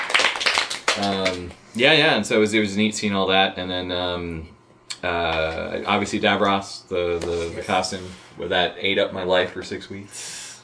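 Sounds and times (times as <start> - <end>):
audience applause: 0.0 - 1.5
speech: 1.0 - 10.4.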